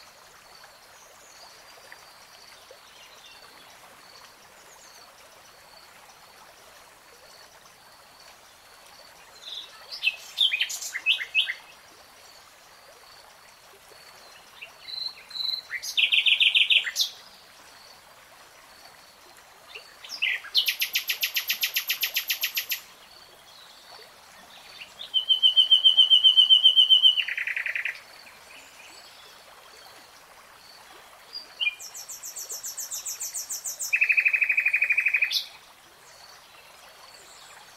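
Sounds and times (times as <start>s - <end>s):
soft water-like background noise: 0.0s - 37.7s
nightingale song: 9.4s - 11.7s, 14.3s - 17.3s, 19.7s - 23.7s, 24.4s - 29.2s, 31.3s - 35.6s.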